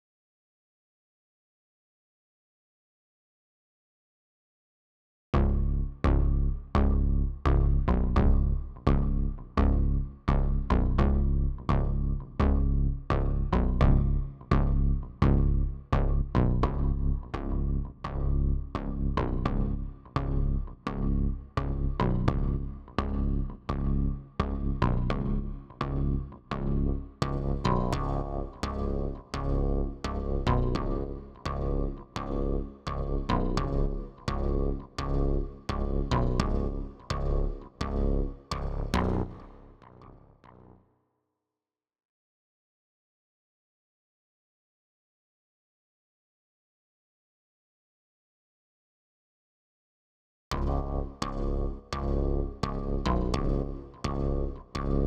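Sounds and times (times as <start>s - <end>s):
bass: 5.4s - 40.8s, 50.5s - 55.0s.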